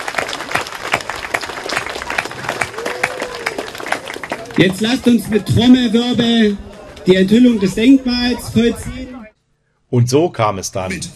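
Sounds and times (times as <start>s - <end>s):
audience applause: 0.0s - 7.1s
speech: 4.6s - 9.3s, 9.9s - 11.1s.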